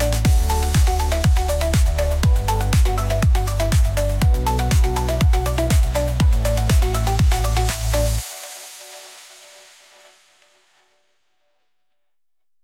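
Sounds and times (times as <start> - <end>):
glitch groove music: 0.0 - 8.3.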